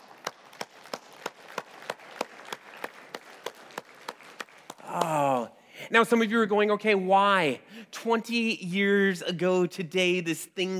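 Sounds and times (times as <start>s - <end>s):
audience clapping in rhythm: 0.0s - 5.5s
speech: 5.9s - 10.7s.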